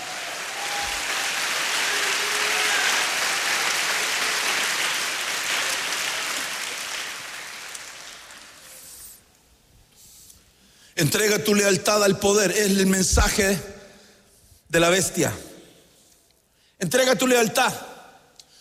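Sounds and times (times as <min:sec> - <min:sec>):
audience clapping hands: 0:00.0 - 0:09.0
speech: 0:11.0 - 0:13.7, 0:14.8 - 0:15.5, 0:16.8 - 0:17.9.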